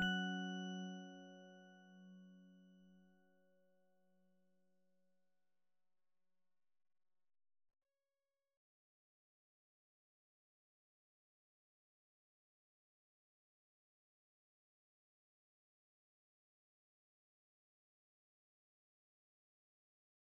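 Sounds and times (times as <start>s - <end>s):
music box: 0.0s - 2.4s.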